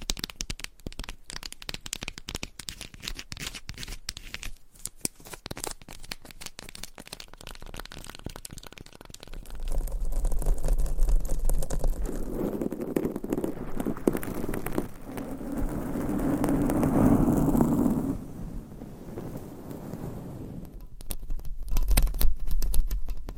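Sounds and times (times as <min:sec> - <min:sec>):
quick sharp clicks and crackles: 0:00.0 - 0:18.5, 0:19.1 - 0:23.3
low rumbling rub and brushing: 0:09.3 - 0:21.0.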